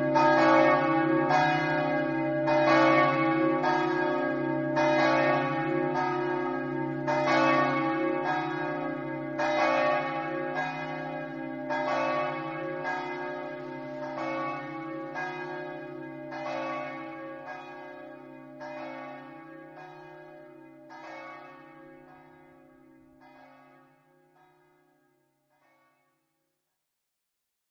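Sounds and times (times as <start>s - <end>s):
bells ringing in Fiumicello: 0.0s - 19.0s.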